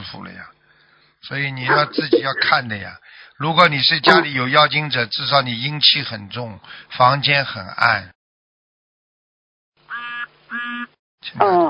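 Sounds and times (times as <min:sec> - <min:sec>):
speech: 0:00.0 - 0:00.6, 0:01.2 - 0:08.2, 0:10.5 - 0:11.6
duck quacking: 0:01.7 - 0:02.5, 0:04.1 - 0:04.3, 0:09.9 - 0:10.9.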